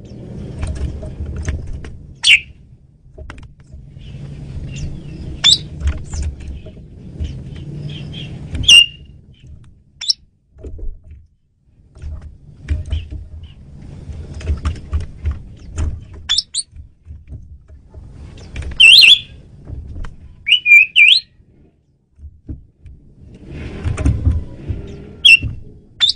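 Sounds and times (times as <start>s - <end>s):
low rumbling noise: 0.0s - 26.1s
Asian pied starling calls: 2.2s - 2.5s, 4.0s - 5.7s, 6.6s - 9.0s, 16.3s - 16.7s, 18.8s - 19.3s, 20.4s - 21.3s, 24.9s - 26.1s.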